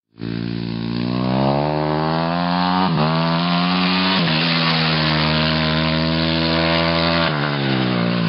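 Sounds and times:
Yamaha dirt bike engine: 0.1s - 8.2s.

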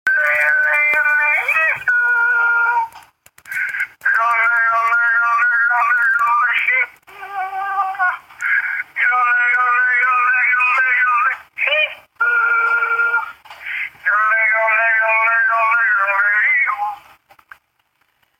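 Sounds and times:
person yodeling: 0.1s - 3.0s, 4.0s - 13.4s, 14.0s - 17.0s.

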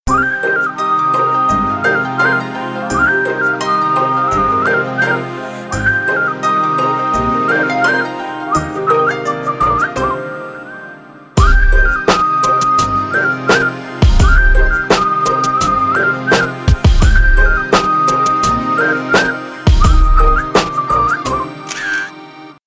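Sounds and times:
instrumental music: 0.1s - 22.6s.

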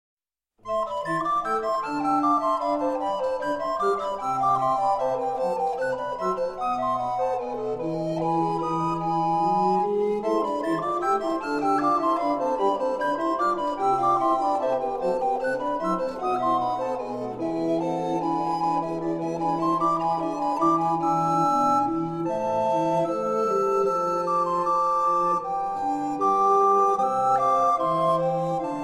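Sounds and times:
minuet: 0.6s - 28.8s.

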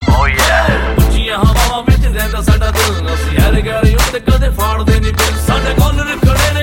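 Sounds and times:
Punjabi rap SMS tone: 0.0s - 6.5s.

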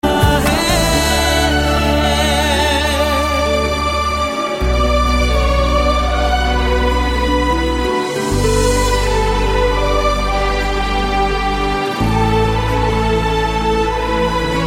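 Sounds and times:
piano tone: 0.0s - 14.6s.

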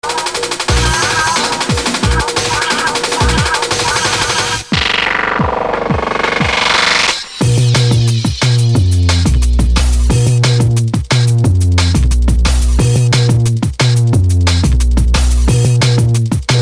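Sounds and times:
drum and bass music: 0.0s - 16.5s.

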